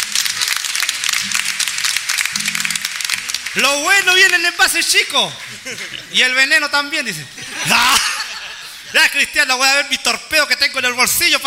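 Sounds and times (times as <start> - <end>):
crowd applauding: 0.0 - 6.2
speech: 3.6 - 8.1, 8.9 - 11.4
laughter: 5.4 - 6.3, 7.3 - 9.0.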